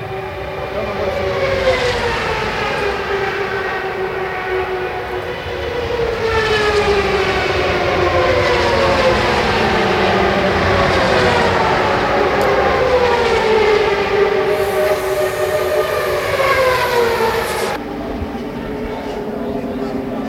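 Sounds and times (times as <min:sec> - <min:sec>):
IndyCar engines roaring at Fontana: 0:00.0 - 0:20.2
bright hiss: 0:14.5 - 0:16.6.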